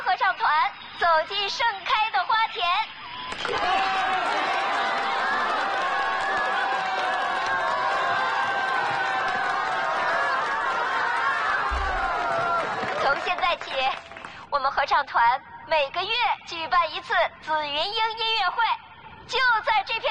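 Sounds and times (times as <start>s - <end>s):
speech: 0.6s - 4.5s, 14.6s - 20.0s
audience applause and cheering: 3.3s - 14.4s.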